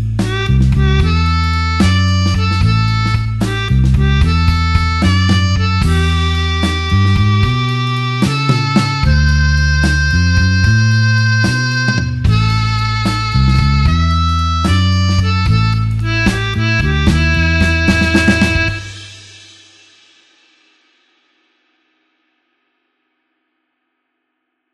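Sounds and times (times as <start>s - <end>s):
slow blues harmonica playing in A: 0.2s - 19.5s.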